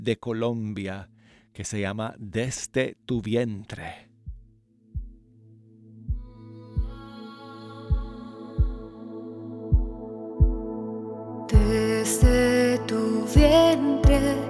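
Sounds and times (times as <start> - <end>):
speech: 0.0 - 4.1
deep heartbeat thumps in paired beats: 4.2 - 5.3, 6.1 - 7.1, 7.9 - 9.0, 9.7 - 10.8, 11.6 - 12.6, 13.4 - 14.4
soft sustained musical drone: 5.4 - 14.4.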